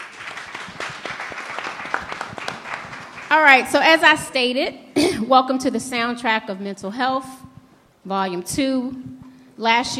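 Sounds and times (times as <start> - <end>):
audience applause after a speaker's introduction: 0.0 - 3.4
speech: 3.3 - 7.4, 8.0 - 9.9.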